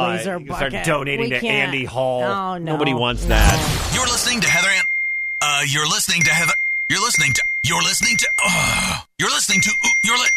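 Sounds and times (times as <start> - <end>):
speech: 0.0 - 10.3
phone ringing or notification tone: 3.1 - 4.8.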